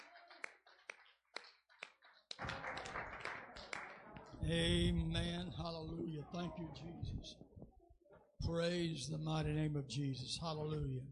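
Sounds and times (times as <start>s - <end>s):
audience clapping: 0.0s - 4.4s
speech: 4.5s - 7.8s, 8.5s - 11.1s.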